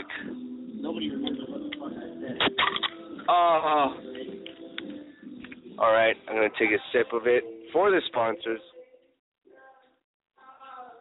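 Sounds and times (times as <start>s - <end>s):
speech: 0.8s - 4.2s, 5.8s - 8.8s
drink can cracked open with a sharp snap: 2.4s - 3.0s.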